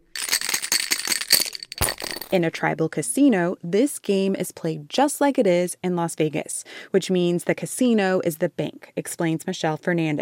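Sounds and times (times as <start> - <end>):
dice being shaken and rolled: 0.0 - 2.4
speech: 2.3 - 10.2.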